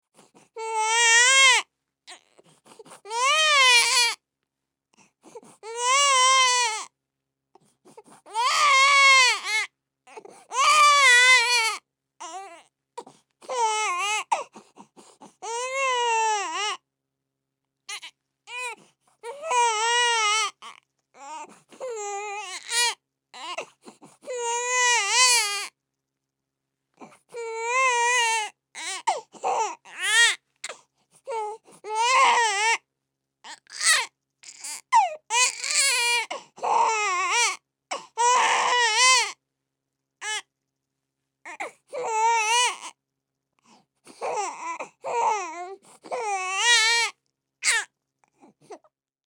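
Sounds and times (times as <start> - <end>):
human baby crying: 0.6 - 2.3, 3.1 - 4.2, 5.6 - 6.9, 8.3 - 12.7, 13.5 - 14.5, 15.4 - 16.8, 17.9 - 23.7, 24.3 - 25.7, 27.3 - 32.8, 33.5 - 39.4, 40.2 - 40.4, 41.5 - 42.9, 44.2 - 47.9.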